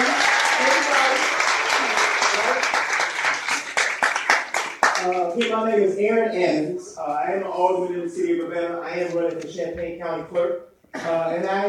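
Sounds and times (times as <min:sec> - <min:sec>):
audience raised voices and cheers: 0:00.0 - 0:02.7
audience applause: 0:00.0 - 0:05.6
speech: 0:05.4 - 0:11.6.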